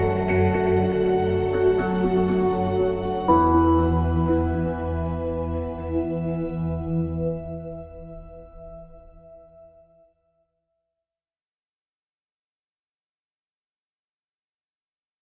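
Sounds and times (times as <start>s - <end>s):
calm ambient music: 0.0s - 10.1s.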